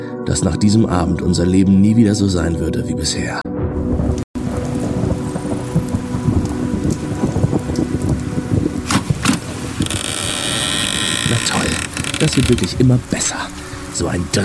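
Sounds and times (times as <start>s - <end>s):
speech: 0.2s - 3.4s, 12.4s - 14.4s
rain falling: 4.1s - 14.4s.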